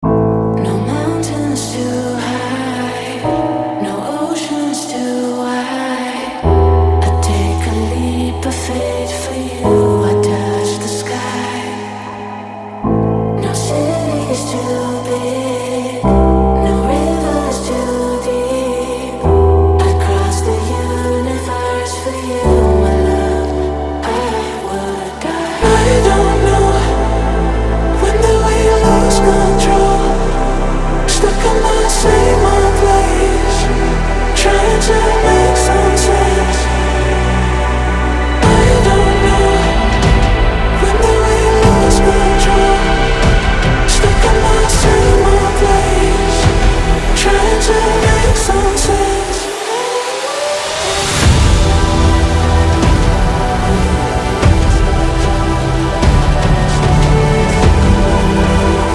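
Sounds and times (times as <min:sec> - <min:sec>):
dubstep music: 0:00.0 - 0:58.9.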